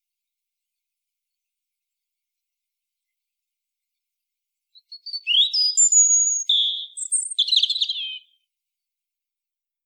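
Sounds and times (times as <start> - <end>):
European robin song: 4.7 - 8.5.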